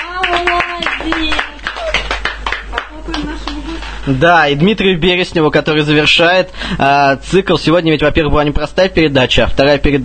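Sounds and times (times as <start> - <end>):
hand clapping: 0.0 - 3.6
low steady hum: 0.0 - 10.0
speech: 4.0 - 10.0.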